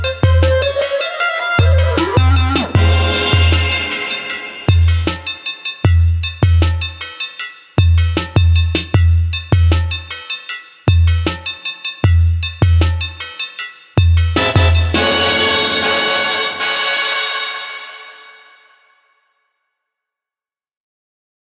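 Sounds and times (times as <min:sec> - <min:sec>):
ethnic music: 0:00.0 - 0:18.7.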